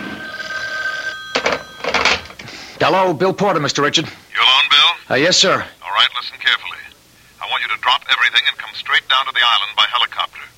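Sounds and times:
telephone ringing: 0.0s - 2.7s
speech: 2.8s - 4.2s, 5.1s - 6.7s, 7.7s - 10.5s.

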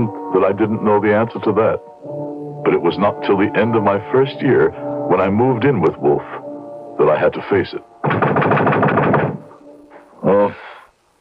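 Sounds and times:
speech: 0.0s - 1.9s, 2.6s - 6.4s, 7.0s - 8.2s
hammering knocks on a door at night: 8.0s - 9.4s.

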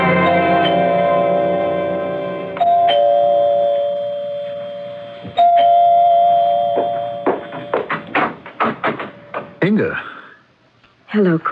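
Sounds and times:
doorbell ringing: 0.2s - 9.6s
rapid sharp taps: 6.8s - 9.6s
speech: 11.1s - 11.4s.

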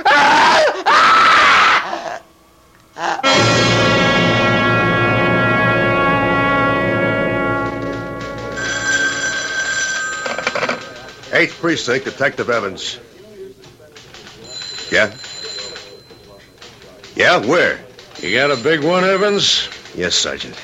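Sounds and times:
woman screaming in terror: 0.0s - 2.2s
blaring dramatic chord: 3.2s - 11.2s
speech: 11.4s - 13.1s, 14.9s - 15.3s, 17.2s - 20.6s.

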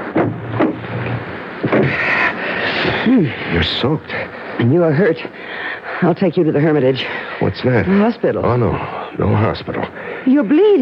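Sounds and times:
car door closing: 0.2s - 2.0s
speech: 3.0s - 10.8s.

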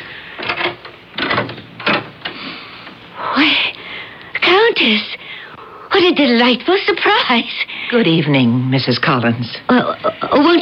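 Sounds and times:
door being opened in a home: 0.4s - 2.4s
speech: 4.8s - 5.1s, 6.0s - 10.6s.

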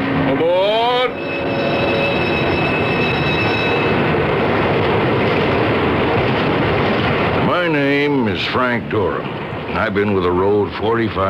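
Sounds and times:
electric commuter train stopping at platform: 0.0s - 8.6s
speech: 8.5s - 11.2s.

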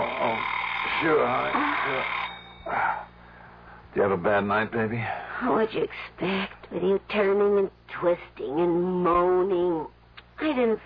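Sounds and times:
alarm clock ringing: 0.0s - 3.3s
speech: 0.2s - 3.0s, 4.0s - 10.8s.

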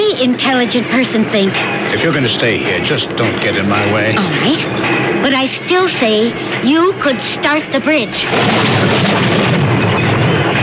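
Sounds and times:
speech: 0.2s - 9.6s
thunder: 8.3s - 10.6s.

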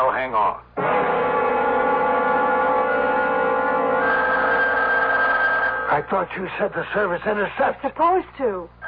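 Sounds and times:
speech: 0.0s - 1.0s, 5.9s - 8.8s
telephone ringing: 0.8s - 6.1s.

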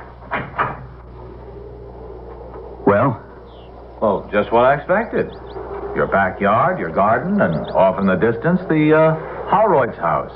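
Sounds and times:
back door of a house clunking open: 0.0s - 1.0s
speech: 2.9s - 3.3s, 4.0s - 10.3s.

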